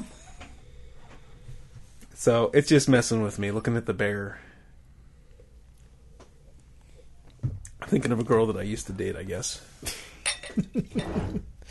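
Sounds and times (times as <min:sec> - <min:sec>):
speech: 0:02.2 - 0:04.5, 0:07.9 - 0:11.5
beer glass clinking while being rinsed: 0:10.2 - 0:11.2.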